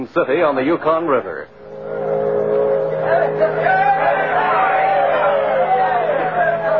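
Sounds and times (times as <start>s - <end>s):
speech: 0.0s - 1.6s
crowd cheering at a riverboat dock: 1.8s - 6.7s.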